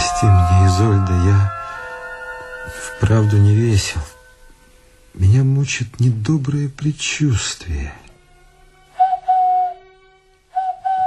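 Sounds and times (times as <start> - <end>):
speech: 0.1 - 1.6, 2.8 - 4.2, 5.1 - 8.0
person whistling a birdlike signal call: 10.6 - 11.0.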